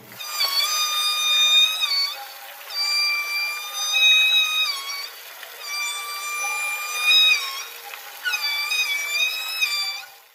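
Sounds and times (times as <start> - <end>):
orca calls: 0.2 - 10.1.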